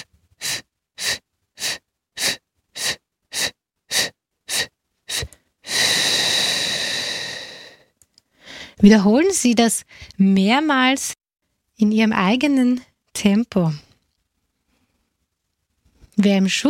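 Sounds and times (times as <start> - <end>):
short sharp breath bursts in a diaphragm breathing exercise: 0.0 - 8.8
speech: 8.8 - 11.2, 11.8 - 13.9, 16.2 - 16.6.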